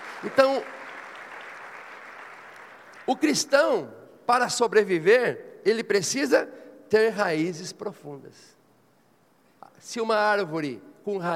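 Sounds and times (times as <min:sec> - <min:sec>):
audience applauding: 0:00.0 - 0:03.3
speech: 0:00.2 - 0:00.8, 0:03.1 - 0:08.6, 0:09.8 - 0:11.3.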